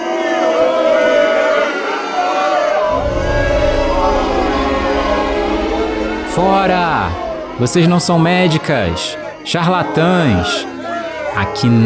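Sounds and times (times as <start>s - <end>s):
crowd booing: 0.0s - 11.8s
speech: 6.5s - 10.7s, 11.4s - 11.8s.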